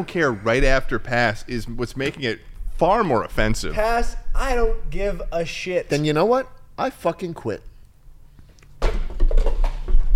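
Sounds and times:
speech: 0.0s - 7.7s
objects being knocked over: 8.8s - 10.1s.

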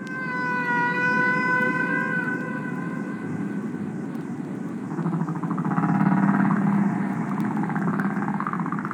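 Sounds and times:
humpback whale song: 0.0s - 8.9s
steady low rumble: 2.1s - 8.9s.

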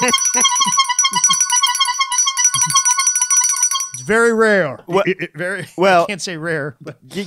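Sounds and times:
steady buzzing note: 0.0s - 4.1s
bright ringing bell tones: 0.0s - 4.2s
speech: 4.1s - 7.2s.

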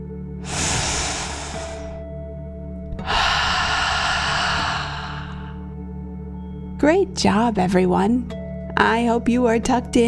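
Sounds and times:
deep breath in and out: 0.4s - 2.0s, 3.0s - 5.8s
speech: 6.8s - 10.0s.

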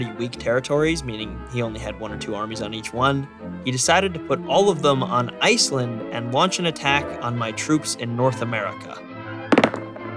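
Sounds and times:
speech: 0.0s - 9.1s
dice rolling in a board game: 9.5s - 10.1s.

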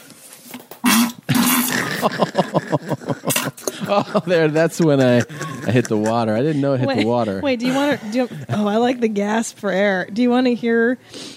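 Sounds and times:
fart: 0.8s - 2.1s
laughter: 1.8s - 9.0s
speech: 2.0s - 3.0s, 3.9s - 11.3s.

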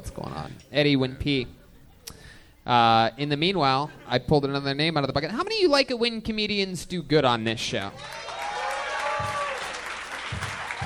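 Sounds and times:
speech: 0.2s - 1.6s, 2.6s - 8.3s, 9.2s - 9.4s
audience applause: 8.0s - 10.8s.

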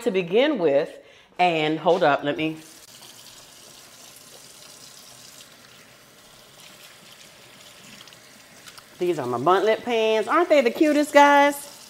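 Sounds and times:
speech: 0.0s - 2.8s, 9.0s - 11.7s
tap water running: 2.4s - 11.8s.

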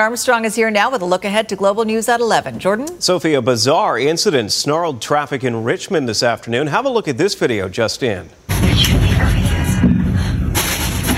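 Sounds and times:
speech: 0.0s - 9.4s
metal oxygen tank smashing into a car: 10.5s - 11.1s.

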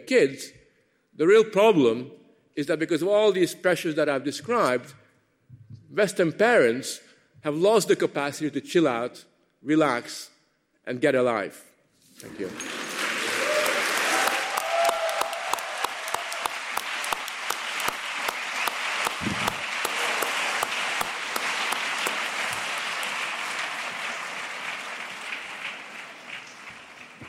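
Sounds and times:
speech: 0.1s - 0.6s, 1.2s - 5.0s, 5.9s - 10.3s, 10.9s - 12.8s
audience applause: 12.2s - 27.2s
whoops: 13.3s - 16.6s.

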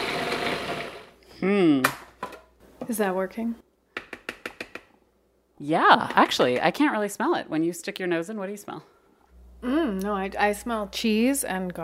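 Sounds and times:
blender whirring making pesto: 0.0s - 1.2s
wavering voice: 1.4s - 1.8s
speech: 2.9s - 3.7s, 5.6s - 8.9s, 9.6s - 11.8s.

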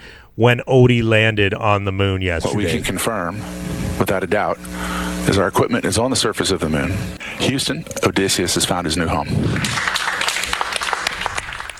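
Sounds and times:
speech: 0.4s - 10.1s
smattering of applause: 9.4s - 11.7s.

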